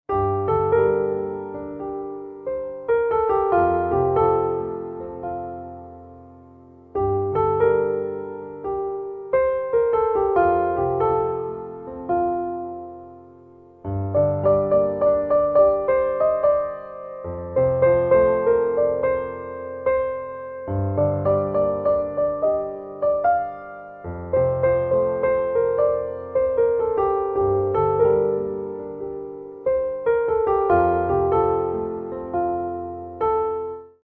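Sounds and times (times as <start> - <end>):
piano: 0.0 - 34.0.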